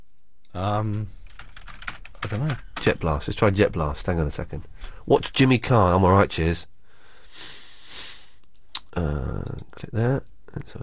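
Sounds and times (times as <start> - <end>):
speech: 0.5 - 1.2, 2.3 - 6.7, 9.0 - 10.8
typing on a computer keyboard: 1.2 - 3.0
brief hummed voice sound: 8.8 - 9.6.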